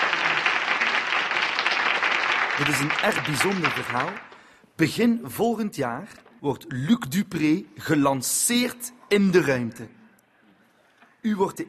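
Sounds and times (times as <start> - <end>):
audience applause: 0.0 - 4.5
speech: 2.6 - 10.0, 11.2 - 11.6.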